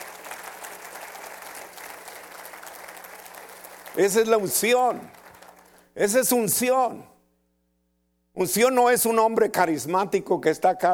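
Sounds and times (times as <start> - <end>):
audience applauding: 0.0 - 5.9
speech: 4.0 - 5.2, 6.0 - 7.1, 8.4 - 10.9.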